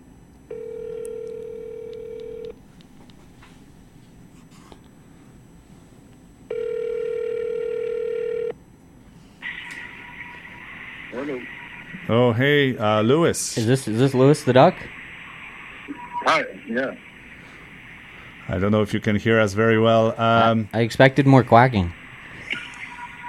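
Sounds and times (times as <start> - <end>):
phone call ringback tones: 0.5 - 2.5, 6.5 - 8.6
call connecting tone: 0.5 - 2.6, 6.4 - 8.6, 9.4 - 23.2
speech: 12.1 - 15.0, 16.7 - 17.1, 18.5 - 22.0.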